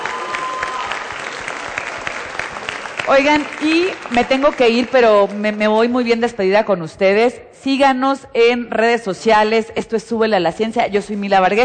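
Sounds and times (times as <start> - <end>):
audience applause: 0.0 - 5.2
speech: 3.1 - 11.6.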